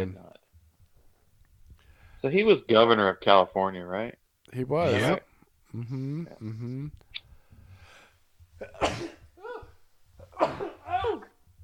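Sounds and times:
speech: 0:00.0 - 0:00.2, 0:02.2 - 0:07.0
person sneezing: 0:08.6 - 0:11.4.

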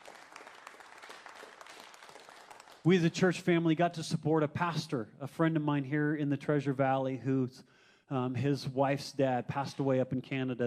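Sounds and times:
audience clapping: 0:00.0 - 0:03.1
speech: 0:02.8 - 0:10.6.

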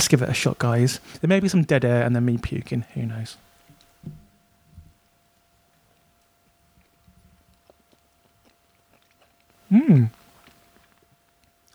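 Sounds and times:
speech: 0:00.0 - 0:04.2, 0:09.7 - 0:10.2
chewing a triple fried egg sandwich: 0:06.8 - 0:11.7
biting into a triple fried egg sandwich with chili sauce and chutney: 0:07.5 - 0:10.6.

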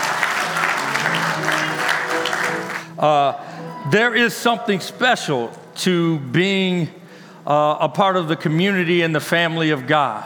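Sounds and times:
audience applause: 0:00.0 - 0:03.0
speech: 0:03.0 - 0:10.2.

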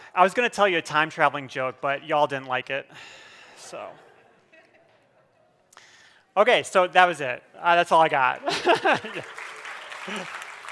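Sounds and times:
speech: 0:00.2 - 0:04.1, 0:06.4 - 0:09.4, 0:10.1 - 0:10.4
laughter: 0:03.7 - 0:05.7, 0:08.3 - 0:10.7
polite audience courtesy applause in a room: 0:08.3 - 0:10.7.

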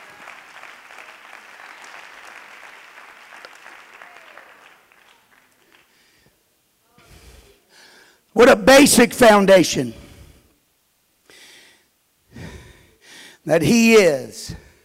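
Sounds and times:
audience clapping hands: 0:00.0 - 0:06.4
speech: 0:08.4 - 0:10.0, 0:13.5 - 0:14.6.

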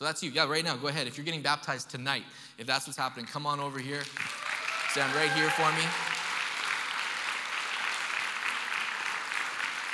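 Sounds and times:
speech: 0:00.0 - 0:06.1
weak crowd clapping: 0:04.0 - 0:09.9.

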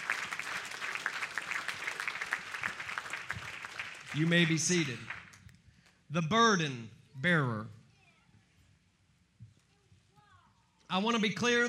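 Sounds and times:
crowd clapping hands in praise: 0:00.0 - 0:05.5
speech: 0:04.1 - 0:05.1, 0:06.1 - 0:07.8, 0:10.9 - 0:11.6.

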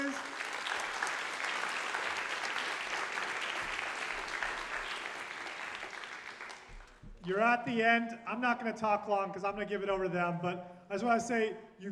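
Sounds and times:
audience applause: 0:00.0 - 0:07.0
speech: 0:07.3 - 0:11.9.

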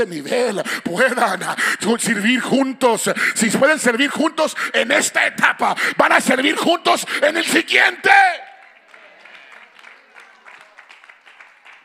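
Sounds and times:
speech: 0:00.0 - 0:08.5
sparse weak audience applause: 0:08.0 - 0:11.8.

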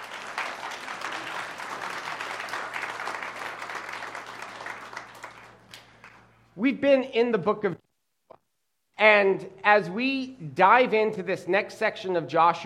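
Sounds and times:
audience applauding: 0:00.0 - 0:06.3
speech: 0:06.6 - 0:07.8, 0:09.0 - 0:12.6.

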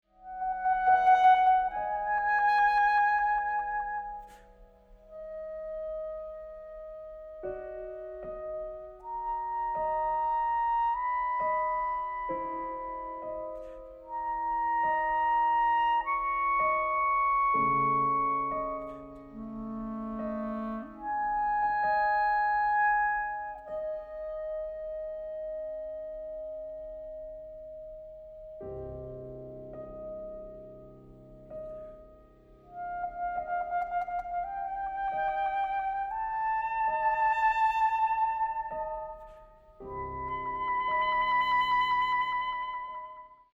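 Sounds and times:
clarinet sonata second movement: 0:00.0 - 0:43.5.

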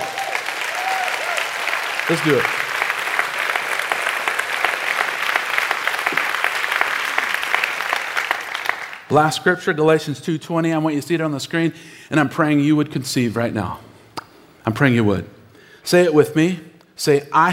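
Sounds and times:
audience clapping: 0:00.0 - 0:09.2
speech: 0:02.1 - 0:02.6, 0:09.1 - 0:13.9, 0:14.6 - 0:17.5.

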